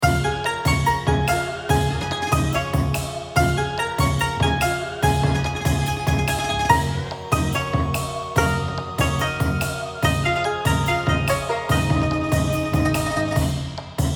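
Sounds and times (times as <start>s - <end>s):
background music: 0.0s - 14.0s.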